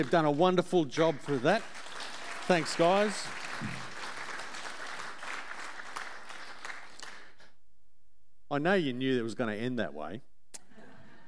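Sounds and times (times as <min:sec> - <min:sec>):
speech: 0:00.0 - 0:01.8, 0:02.5 - 0:03.9, 0:08.5 - 0:10.3
children clapping: 0:00.0 - 0:07.5.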